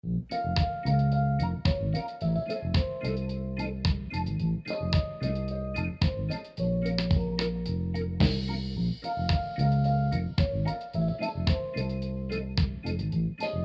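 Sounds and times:
reggae music on radio: 0.3s - 13.6s.

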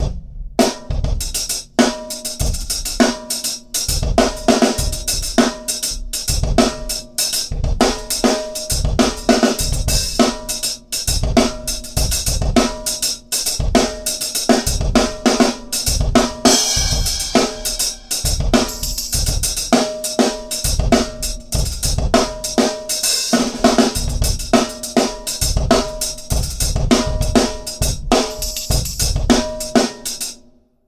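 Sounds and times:
subway busker drums playing for tips: 0.0s - 30.7s.

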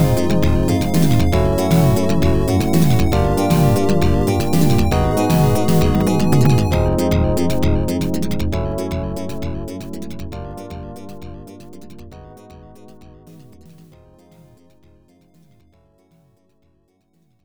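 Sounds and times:
countdown: 0.0s - 12.8s.

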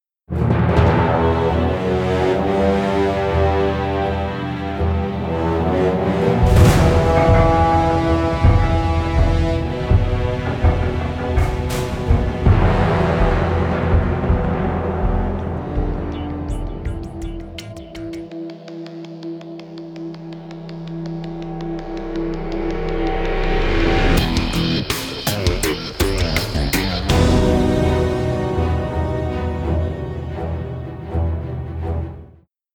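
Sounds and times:
suspense music: 0.3s - 32.4s.

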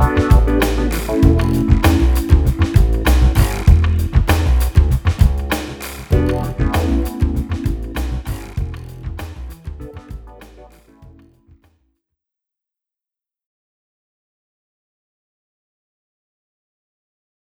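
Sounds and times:
turbulent ambient drone: 0.0s - 10.3s.

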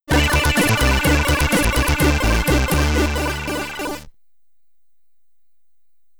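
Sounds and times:
SID stereo chiptune game music: 0.1s - 4.1s.

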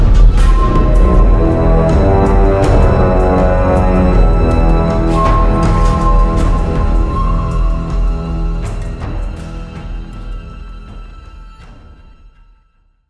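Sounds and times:
defeat jingle: 0.2s - 10.0s.

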